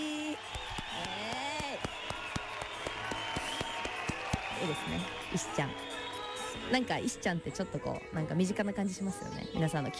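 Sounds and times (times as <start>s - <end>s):
light clapping: 0.4s - 6.3s
speech: 4.6s - 5.9s, 6.6s - 9.9s.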